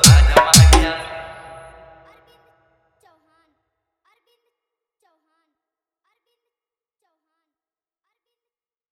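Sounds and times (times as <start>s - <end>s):
wedding song hard bass full dance mix: 0.0s - 1.2s.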